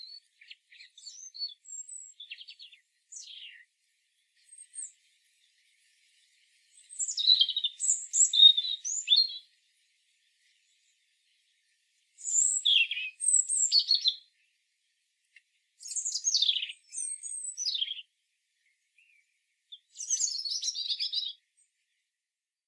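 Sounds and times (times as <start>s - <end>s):
European robin singing: 0.0s - 3.7s, 4.4s - 5.1s, 6.6s - 9.5s, 12.2s - 14.4s, 15.8s - 18.1s, 19.0s - 21.4s
faint hiss: 0.0s - 22.3s.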